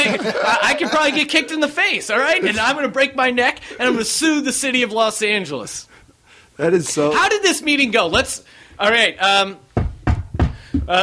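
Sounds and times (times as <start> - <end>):
laughter: 0.0 - 4.2
speech: 0.2 - 5.9, 6.6 - 9.6, 10.9 - 11.0
hand banging on a table: 9.8 - 10.9.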